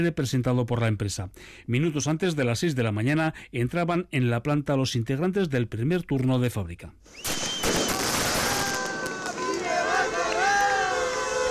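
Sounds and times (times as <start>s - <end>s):
speech: 0.0s - 7.5s
crowd applauding: 7.5s - 11.5s
crowd shouting support: 8.0s - 11.5s.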